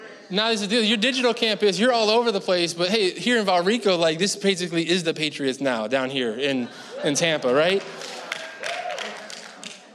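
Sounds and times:
faint murmur of voices: 0.0s - 1.6s, 5.6s - 9.9s
speech: 0.3s - 8.2s
audience clapping: 7.4s - 9.9s.

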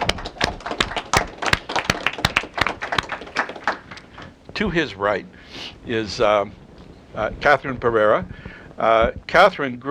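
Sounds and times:
audience welcome applause: 0.0s - 4.4s
speech: 4.6s - 6.6s, 7.2s - 9.9s.

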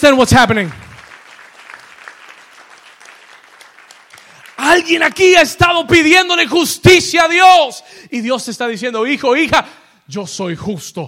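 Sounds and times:
speech: 0.0s - 0.8s, 4.7s - 11.0s
loud applause: 0.0s - 6.0s.

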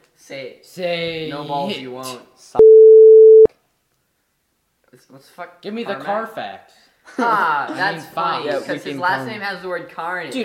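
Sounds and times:
speech: 0.3s - 3.1s, 4.9s - 10.4s
censor bleep: 2.6s - 3.5s.

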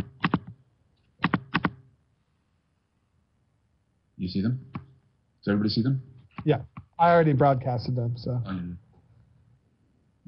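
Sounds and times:
computer mouse double-clicks: 0.0s - 0.6s, 1.2s - 1.8s
speech: 4.2s - 4.8s, 5.4s - 8.8s.

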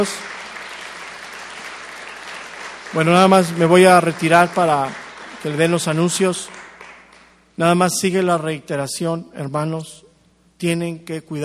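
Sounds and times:
speech: 0.0s - 0.4s, 2.9s - 6.6s, 7.6s - 10.0s, 10.6s - 11.4s
crowd applause: 0.0s - 7.3s.

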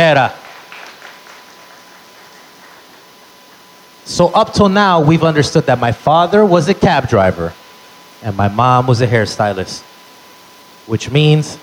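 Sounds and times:
speech: 0.0s - 0.4s, 4.1s - 7.6s, 8.2s - 9.9s, 10.9s - 11.6s
audience applause: 0.3s - 3.0s.

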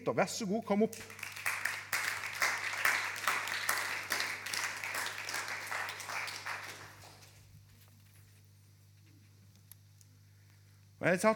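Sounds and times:
speech: 0.0s - 1.4s, 11.0s - 11.3s
low constant hum: 0.0s - 11.3s
warm audience applause: 1.0s - 7.4s.

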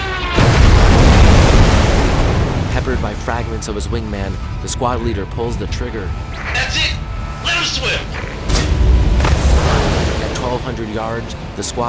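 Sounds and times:
Avenger warplane crashing in flames into the sea: 0.1s - 4.6s, 8.4s - 11.2s
speech: 3.1s - 7.0s, 7.6s - 8.3s, 10.5s - 11.8s.

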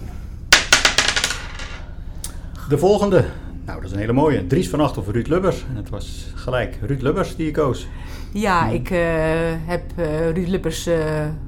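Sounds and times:
die rolling across a hard surface: 0.5s - 1.8s
speech: 2.7s - 11.4s.

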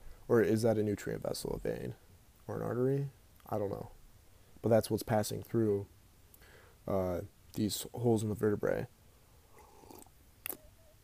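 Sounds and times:
speech: 0.3s - 4.0s, 4.6s - 6.0s, 6.8s - 9.0s
person slurping drink: 9.5s - 10.1s.

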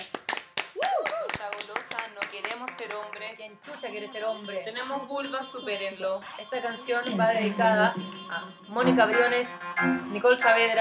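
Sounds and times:
crowd applause: 0.0s - 3.4s
voices whooping and cheering: 0.8s - 1.6s
speech: 2.8s - 10.7s.

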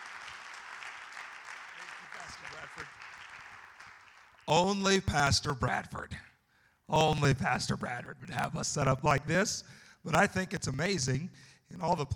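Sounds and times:
church congregation applause welcoming its first speaker: 0.0s - 5.2s
speech: 2.4s - 3.1s, 4.5s - 6.3s, 6.9s - 12.1s.

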